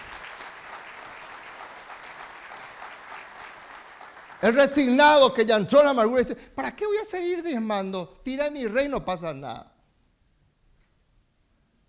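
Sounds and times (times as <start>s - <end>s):
audience applauding: 0.0s - 5.0s
speech: 4.4s - 9.7s.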